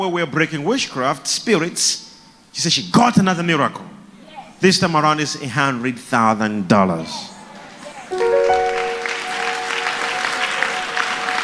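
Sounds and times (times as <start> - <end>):
speech: 0.0 - 4.0, 4.6 - 7.3
audience clapping: 8.1 - 11.4.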